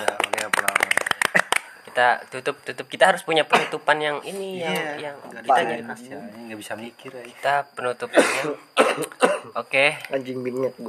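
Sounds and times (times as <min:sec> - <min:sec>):
hand clap used as sound effect: 0:00.0 - 0:01.8
speech: 0:02.0 - 0:10.8.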